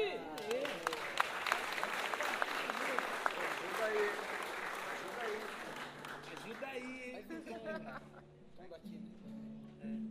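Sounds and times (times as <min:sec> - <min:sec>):
audience applause: 0:00.4 - 0:07.0
laughter: 0:06.4 - 0:08.4.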